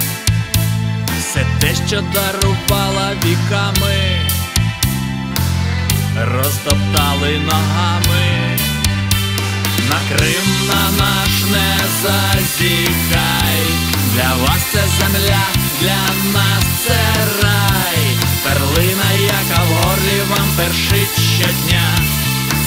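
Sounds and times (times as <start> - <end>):
Ukrainian rock guitar music: 0.0 - 22.6.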